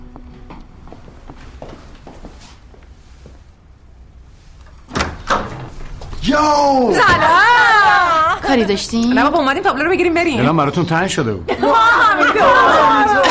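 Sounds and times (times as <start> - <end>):
door being opened: 4.6 - 6.4
speech: 6.3 - 7.5, 8.5 - 13.2
laughter: 7.0 - 8.5, 11.5 - 13.2.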